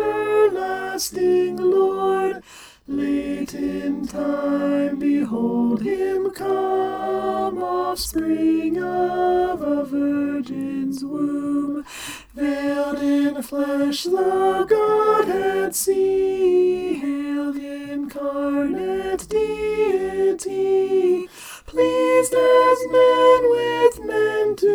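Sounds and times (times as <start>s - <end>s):
alto singing a Christmas carol: 0.0s - 24.7s.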